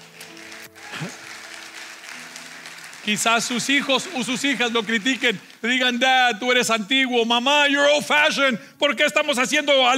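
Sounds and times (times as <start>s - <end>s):
audience clapping: 0.0s - 6.4s
speech: 1.0s - 1.2s, 3.1s - 9.9s.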